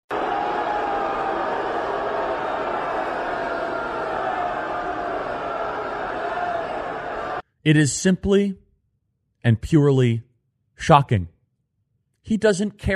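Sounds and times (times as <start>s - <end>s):
crowd booing at the Texas Republican Convention: 0.1s - 7.4s
speech: 7.6s - 8.6s, 9.4s - 11.3s, 12.2s - 12.9s.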